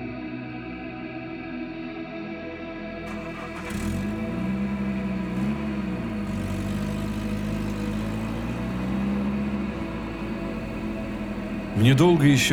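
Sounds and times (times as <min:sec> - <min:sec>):
car engine starting, revving and pulling away: 0:03.0 - 0:12.5
speech: 0:11.8 - 0:12.5.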